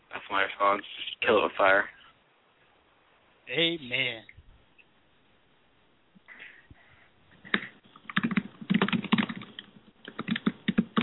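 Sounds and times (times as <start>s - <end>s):
speech: 0.3s - 2.0s, 3.5s - 4.3s
loud typing on a computer keyboard: 7.5s - 11.0s.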